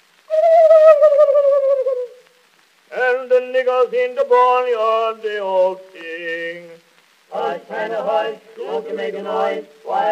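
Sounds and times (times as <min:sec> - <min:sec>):
voice imitating a turkey gobbling: 0:00.3 - 0:02.3
speech: 0:03.7 - 0:06.7, 0:07.4 - 0:10.1.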